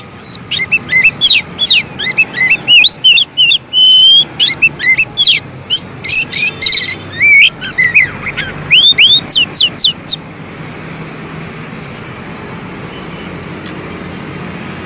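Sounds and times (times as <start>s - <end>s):
oriental magpie-robin song: 0.0s - 10.2s.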